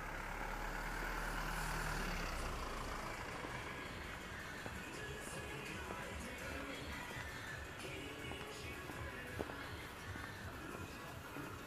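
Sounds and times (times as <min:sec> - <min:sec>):
vehicle rumbling past: 0:00.0 - 0:07.6
Saturday morning traffic in Shinjuku: 0:00.0 - 0:11.6
voices: 0:02.0 - 0:11.6.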